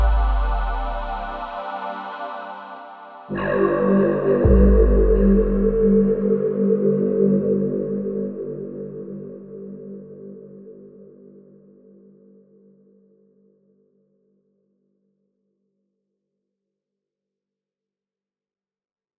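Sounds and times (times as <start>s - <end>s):
ambient music: 0.0s - 12.2s.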